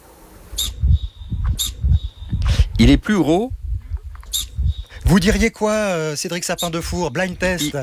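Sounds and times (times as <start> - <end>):
alpine ibex hissing whistle-snorts: 0.6 - 2.8
low thumping rumbles: 0.6 - 5.8, 6.7 - 7.8
speech: 2.8 - 3.6, 5.1 - 7.8.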